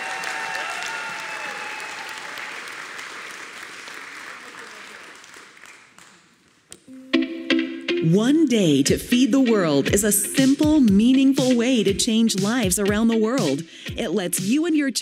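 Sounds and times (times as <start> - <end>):
audience applause at a church gathering: 0.0 - 6.8
speech: 8.0 - 15.0.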